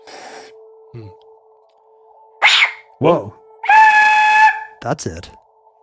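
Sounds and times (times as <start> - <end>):
speech: 0.9 - 1.2, 3.0 - 3.4, 4.8 - 5.4
spooky whistle blown with screamy hollow tone: 3.6 - 4.7.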